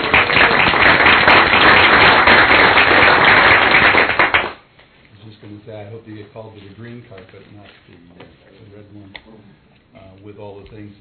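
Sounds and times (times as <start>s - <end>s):
round of applause: 0.0s - 4.6s
speech: 6.4s - 11.0s.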